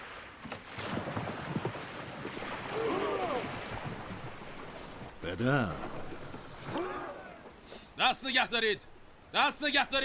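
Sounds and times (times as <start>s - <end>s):
oars rowing a boat through water: 0.0s - 8.0s
speech: 5.4s - 5.9s, 8.0s - 10.0s.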